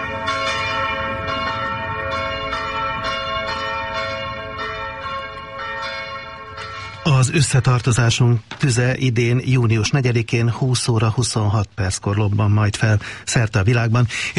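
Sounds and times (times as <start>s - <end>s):
test church bell ringing from app: 0.0s - 8.2s
speech: 7.2s - 14.3s.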